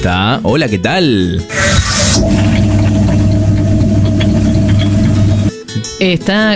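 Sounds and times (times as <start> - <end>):
speech: 0.0 - 2.6, 6.0 - 6.5
electric mixer whirring: 1.5 - 5.5.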